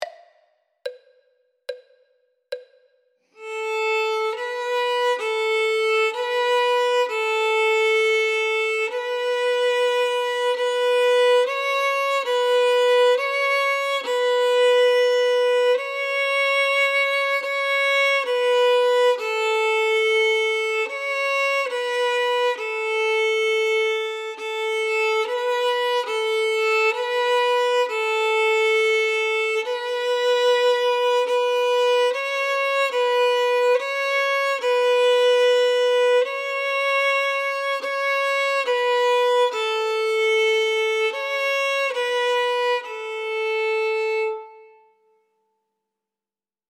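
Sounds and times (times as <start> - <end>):
first violin: 3.3 - 45.3.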